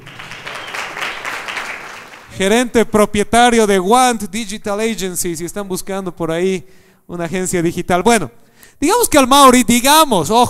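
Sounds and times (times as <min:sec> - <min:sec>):
crowd applause: 0:00.0 - 0:02.3
speech: 0:02.4 - 0:10.4.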